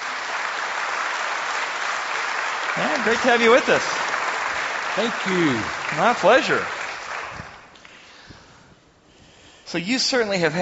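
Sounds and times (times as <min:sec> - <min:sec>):
audience applause welcoming a guest onto an interview show: 0:00.0 - 0:07.9
speech: 0:02.8 - 0:04.0, 0:05.0 - 0:06.8, 0:09.7 - 0:10.6.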